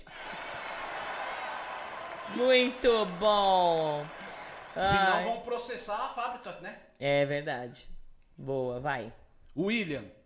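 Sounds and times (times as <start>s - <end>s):
round of applause: 0.0s - 5.9s
speech: 2.3s - 10.2s.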